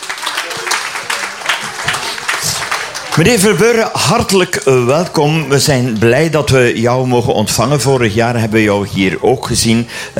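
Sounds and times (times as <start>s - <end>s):
audience applause at an outdoor family radio event: 0.0s - 6.4s
speech: 3.2s - 10.1s.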